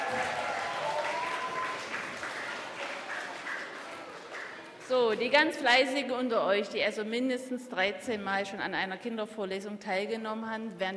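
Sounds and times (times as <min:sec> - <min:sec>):
audience applause: 0:00.0 - 0:04.9
speech: 0:04.9 - 0:10.9.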